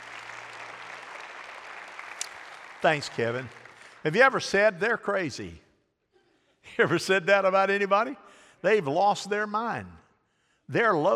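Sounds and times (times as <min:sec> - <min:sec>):
audience clapping: 0:00.0 - 0:04.8
speech: 0:02.8 - 0:05.6, 0:06.6 - 0:10.0, 0:10.7 - 0:11.1.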